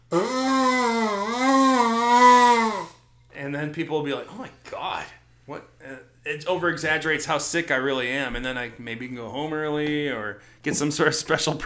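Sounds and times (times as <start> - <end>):
mouth imitating exaggerated nose blowing into tissue: 0.0 - 3.0
speech: 3.6 - 11.6.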